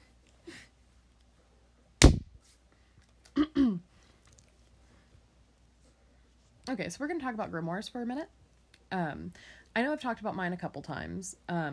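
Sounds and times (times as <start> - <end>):
hand clap: 2.0 - 2.3
speech: 6.7 - 11.7.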